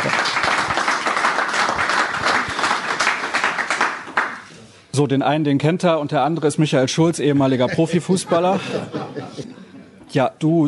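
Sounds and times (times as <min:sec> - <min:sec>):
audience applause: 0:00.0 - 0:04.5
speech: 0:05.0 - 0:10.6
laughter: 0:07.4 - 0:10.0.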